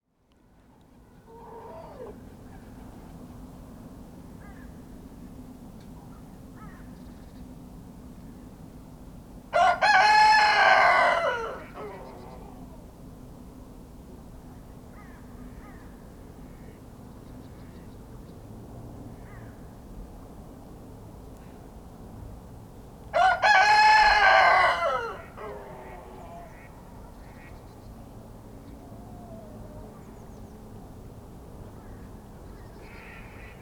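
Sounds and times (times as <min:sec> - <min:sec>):
rooster crowing in a pen at a small farmhouse in Kawcze, Poland: 0:09.5 - 0:12.6, 0:23.1 - 0:26.6.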